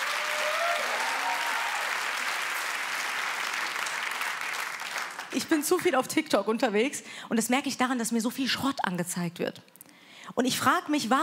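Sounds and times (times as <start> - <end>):
audience applause: 0.0 - 5.4
speech: 5.3 - 11.2.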